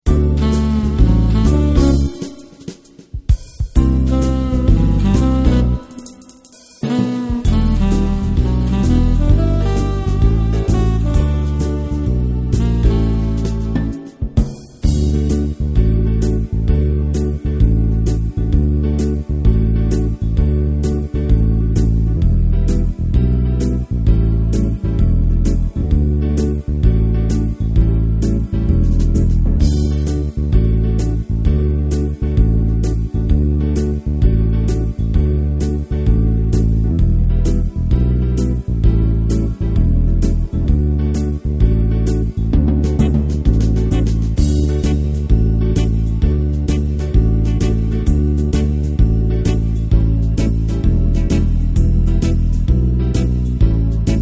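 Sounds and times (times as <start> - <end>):
instrumental hymn: 0.1 - 54.2.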